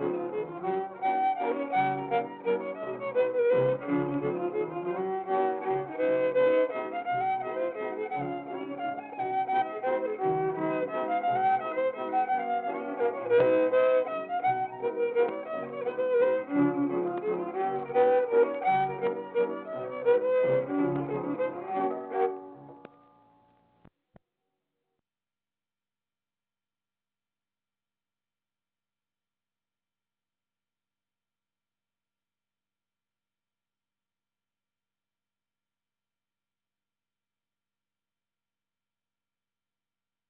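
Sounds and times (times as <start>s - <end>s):
music: 0.0s - 23.9s.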